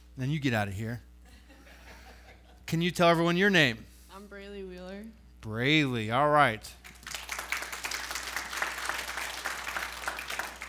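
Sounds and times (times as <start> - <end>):
speech: 0.2 - 1.1, 2.7 - 6.9
applause: 6.8 - 10.6.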